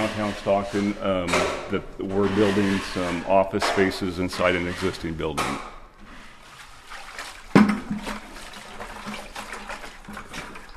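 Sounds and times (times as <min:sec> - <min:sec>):
speech: 0:00.2 - 0:05.7
water poured into mud mix: 0:06.5 - 0:10.7.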